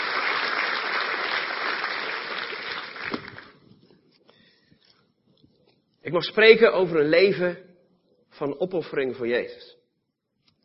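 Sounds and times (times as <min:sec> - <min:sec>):
audience applause: 0:00.0 - 0:03.6
speech: 0:06.1 - 0:07.7, 0:08.4 - 0:09.8.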